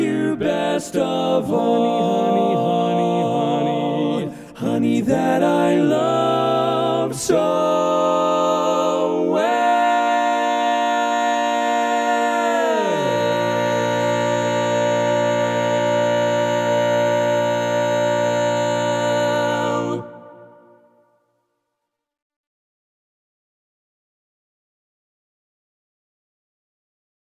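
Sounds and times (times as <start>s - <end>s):
vocal lead part of a medley learning track: 0.0s - 21.2s.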